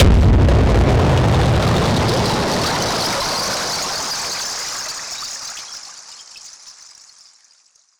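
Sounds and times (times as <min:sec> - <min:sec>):
noise bomb burst: 0:00.0 - 0:05.3.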